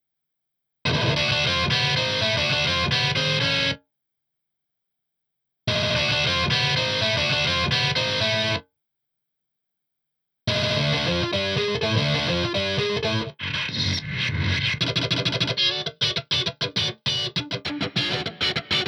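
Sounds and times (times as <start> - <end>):
guitar solo: 0.9 - 3.8, 5.8 - 8.6, 10.5 - 14.0, 14.8 - 18.8.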